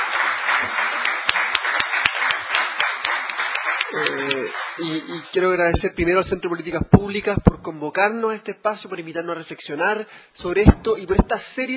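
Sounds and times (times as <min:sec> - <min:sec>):
audience applause for panelists: 0:00.0 - 0:04.9
speech: 0:04.0 - 0:11.7.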